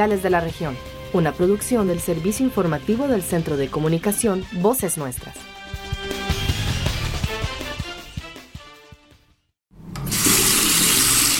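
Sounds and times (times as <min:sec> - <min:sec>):
speech: 0:00.0 - 0:05.5
music with steady beats: 0:04.3 - 0:09.4
water gushing from a tap: 0:10.1 - 0:11.3.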